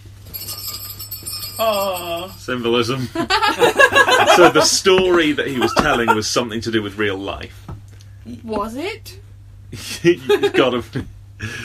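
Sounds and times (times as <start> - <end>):
jingle bells ringing: 0.0 - 4.5
speech: 1.6 - 7.6, 8.3 - 11.6
laughter: 3.0 - 6.4, 9.8 - 11.6.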